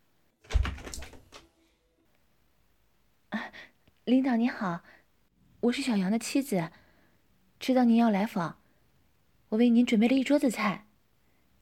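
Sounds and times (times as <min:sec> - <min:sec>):
front door being opened: 0:00.4 - 0:01.5
knock-like thud: 0:00.5 - 0:01.2
speech: 0:04.1 - 0:05.0, 0:05.6 - 0:06.8, 0:07.6 - 0:08.6, 0:09.5 - 0:10.9.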